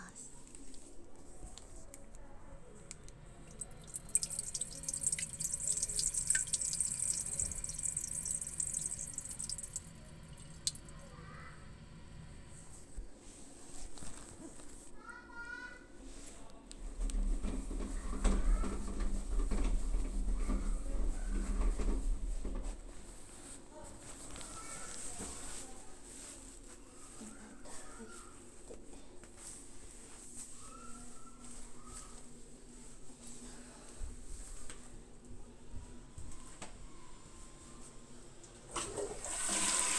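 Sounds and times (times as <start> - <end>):
person urinating in a shop toilet: 2.8 - 13.0, 17.0 - 22.7, 38.6 - 39.9.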